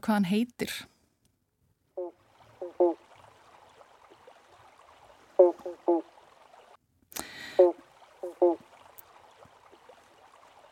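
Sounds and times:
speech: 0.0s - 0.9s
banjo frog calling: 1.9s - 3.2s, 5.3s - 6.2s, 7.4s - 8.7s.

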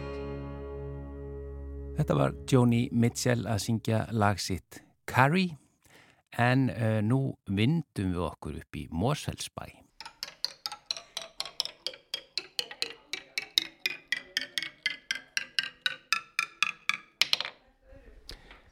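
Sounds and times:
speech: 2.0s - 5.6s, 6.3s - 9.8s
toy ticking: 10.0s - 17.5s.

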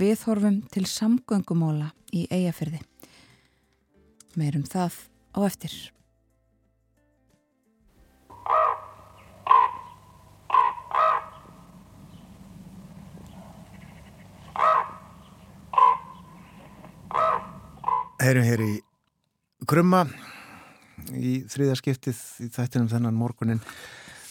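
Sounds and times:
speech: 0.0s - 2.9s, 4.4s - 6.0s, 18.2s - 18.9s, 19.6s - 20.3s, 21.0s - 24.2s
low hum: 8.3s - 18.0s
common raven calls: 8.3s - 18.3s.

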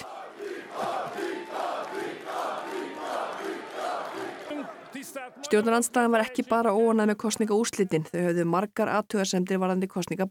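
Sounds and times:
supporters cheering after election result: 0.0s - 6.9s
speech: 5.3s - 10.2s.

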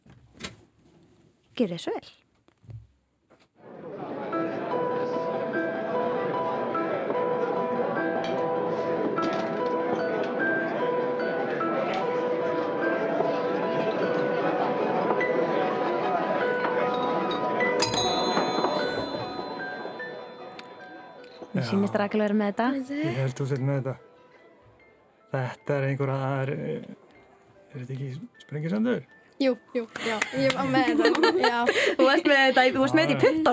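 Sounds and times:
speech: 1.6s - 2.2s, 21.7s - 24.1s, 25.3s - 27.0s, 27.7s - 33.5s
restaurant chatter: 3.7s - 21.5s
pianist playing piano: 4.0s - 33.5s
clinking glasses: 16.9s - 20.5s
laughter: 30.0s - 33.5s.

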